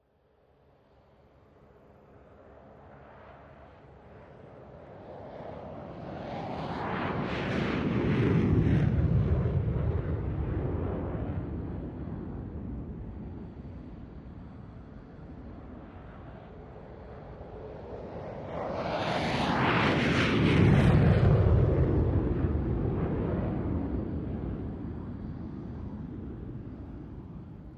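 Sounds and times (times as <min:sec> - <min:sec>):
F4 Phantom jet taking off: 0:05.2 - 0:16.6, 0:17.2 - 0:27.6.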